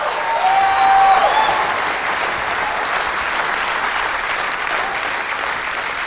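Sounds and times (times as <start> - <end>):
audience applause: 0.0 - 6.0
brief high whistle or whoop: 0.1 - 1.7.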